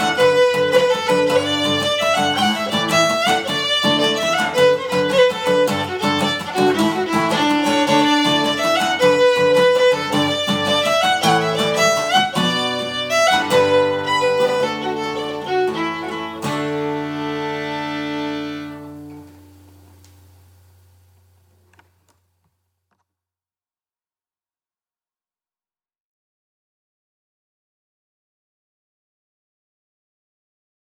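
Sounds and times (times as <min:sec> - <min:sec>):
jig tune: 0:00.0 - 0:19.4.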